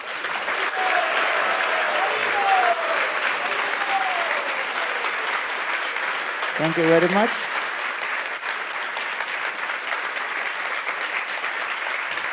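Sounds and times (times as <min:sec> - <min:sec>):
audience applause after a presentation at a Hare Krishna gathering: 0:00.0 - 0:12.3
speech: 0:06.6 - 0:07.6.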